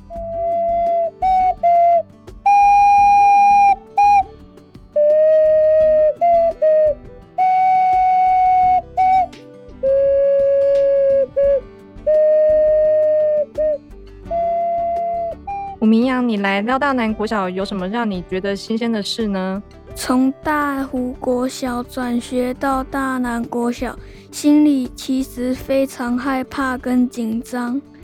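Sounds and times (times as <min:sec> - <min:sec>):
ocarina playing a welcome song: 0:00.0 - 0:04.3, 0:05.0 - 0:16.0
speech: 0:16.4 - 0:27.9.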